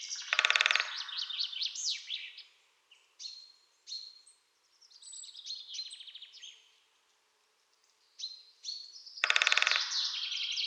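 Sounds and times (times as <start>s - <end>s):
woodpecker giving harsh raspy calls: 0.1s - 1.5s, 9.2s - 10.6s.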